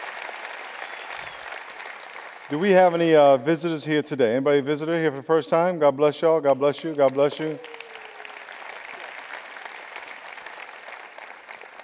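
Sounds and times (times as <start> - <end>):
audience applause: 0.0 - 3.2, 7.0 - 11.8
speech: 2.5 - 7.7.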